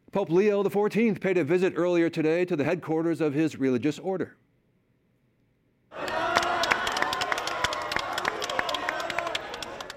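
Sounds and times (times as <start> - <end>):
speech: 0.1 - 4.4
crowd cheering: 5.9 - 9.9.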